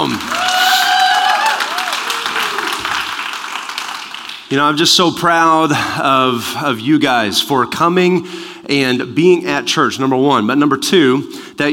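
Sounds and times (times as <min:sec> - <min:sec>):
speech: 0:00.0 - 0:00.4, 0:04.5 - 0:11.7
audience clapping loudly: 0:00.0 - 0:04.5
voices whooping and calling out: 0:00.3 - 0:02.8.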